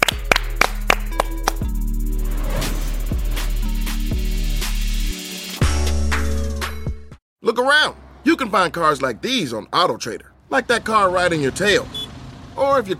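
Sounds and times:
people clapping: 0.0s - 1.7s
music with a deep bass line: 0.0s - 7.2s
speech: 7.6s - 12.0s, 12.6s - 12.9s.

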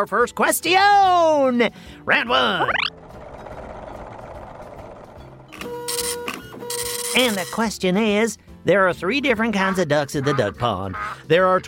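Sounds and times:
speech: 0.0s - 2.9s, 7.2s - 11.6s
Math-O-Matic machine firing up: 2.7s - 7.6s.

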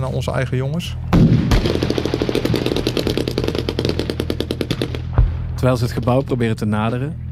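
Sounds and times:
speech: 0.0s - 3.1s, 5.6s - 7.2s
gunfire from a building: 1.1s - 6.3s
grenades: 1.1s - 6.4s.

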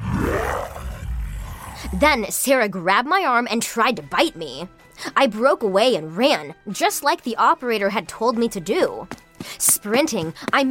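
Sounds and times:
low guttural zombie growl: 0.0s - 2.3s
speech: 1.9s - 10.6s.

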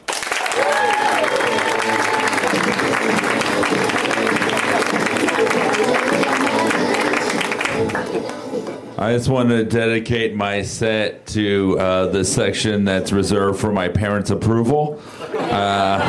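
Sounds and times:
crowd applause for comedian: 0.0s - 8.9s
cheers and whoops: 0.3s - 2.9s
laughter: 1.5s - 8.4s, 15.1s - 16.0s
speech: 9.0s - 16.0s.

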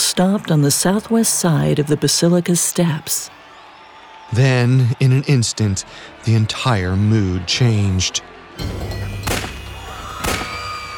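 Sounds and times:
speech: 0.2s - 3.4s, 4.3s - 9.3s
gunshots: 8.6s - 10.9s.

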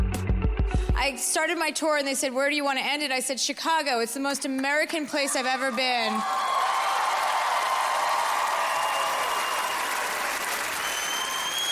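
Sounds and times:
speech: 1.0s - 6.5s
crowd clapping: 5.5s - 11.6s.

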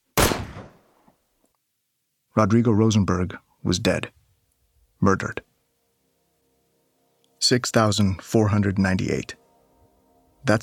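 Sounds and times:
9 millimeter pistol gunshot fired at point blank range: 0.2s - 0.8s
speech: 2.4s - 4.2s, 5.0s - 5.5s, 7.4s - 9.4s, 10.4s - 10.6s.

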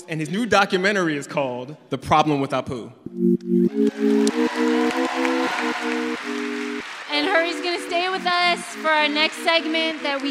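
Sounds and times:
speech: 0.0s - 5.1s, 7.2s - 10.2s
audience applause: 3.7s - 10.2s.

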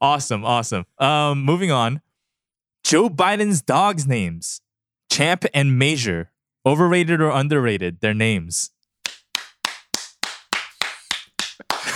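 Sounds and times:
speech: 0.0s - 2.0s, 2.8s - 8.8s
one person clapping: 9.0s - 11.9s.

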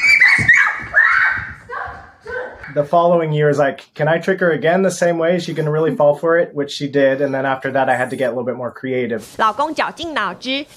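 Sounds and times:
wife screaming in fright: 0.0s - 2.5s
speech: 2.7s - 10.7s.

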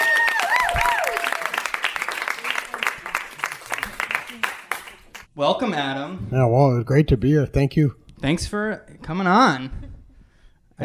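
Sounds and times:
audience applauding a storyteller at the Magnet theater: 0.0s - 5.3s
speech: 5.4s - 9.8s.

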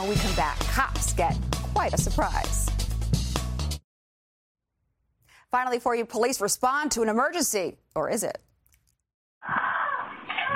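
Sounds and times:
speech: 0.0s - 2.7s, 5.5s - 8.5s
blood-curdling scream: 9.4s - 10.5s.

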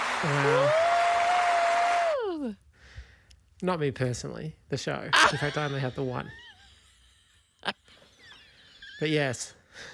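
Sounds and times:
applause button sound effect: 0.0s - 2.0s
speech: 0.2s - 0.8s, 3.6s - 6.5s, 7.6s - 8.0s, 9.0s - 9.9s
laughter: 5.2s - 9.3s.

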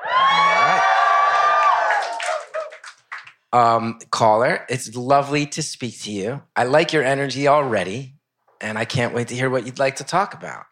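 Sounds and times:
audience cheering: 0.0s - 3.2s
speech: 3.5s - 10.7s.

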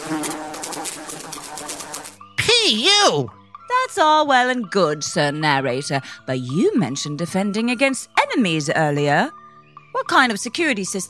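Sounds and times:
insects buzzing: 0.0s - 2.4s
speech: 2.7s - 11.0s.

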